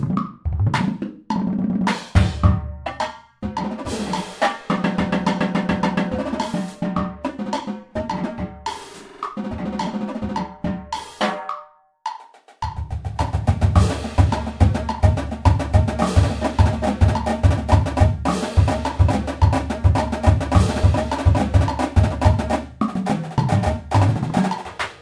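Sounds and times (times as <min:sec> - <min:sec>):
drum flams: 0:00.0 - 0:11.5, 0:12.4 - 0:25.0.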